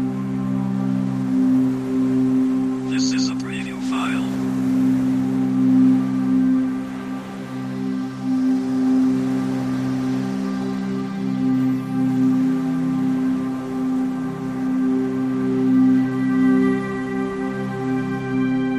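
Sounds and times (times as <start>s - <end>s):
music: 0.0s - 18.7s
sea waves: 0.0s - 18.7s.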